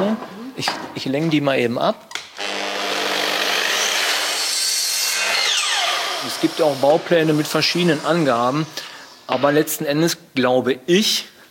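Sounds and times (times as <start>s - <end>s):
speech: 0.6s - 2.2s, 6.2s - 11.3s
saw cutting through wood: 2.4s - 9.5s.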